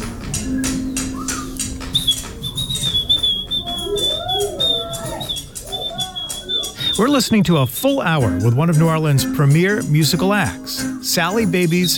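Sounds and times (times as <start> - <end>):
audience whistling and imitating bird calls: 0.0 - 8.7, 11.1 - 11.9
dense murmur of people: 0.0 - 11.9
speech: 7.0 - 11.9.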